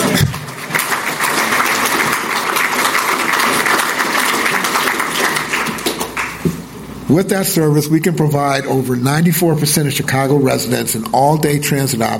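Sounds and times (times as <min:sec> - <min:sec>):
audience clapping: 0:00.0 - 0:06.8
speech: 0:07.1 - 0:12.1.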